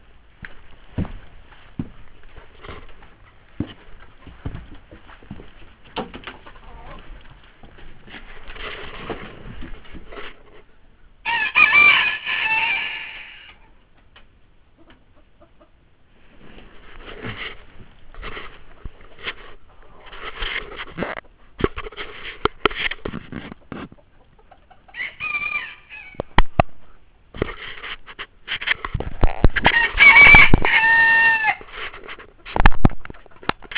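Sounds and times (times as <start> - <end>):
chickens: 4.0 - 10.6, 11.2 - 33.7
rooster: 6.4 - 7.1, 11.2 - 13.7, 24.4 - 26.4, 29.2 - 31.7.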